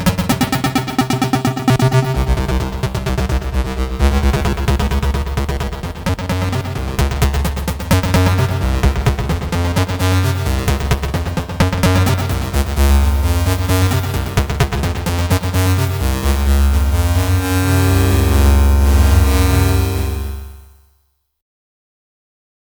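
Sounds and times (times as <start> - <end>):
different plucky arpeggios: 0.2 - 20.7.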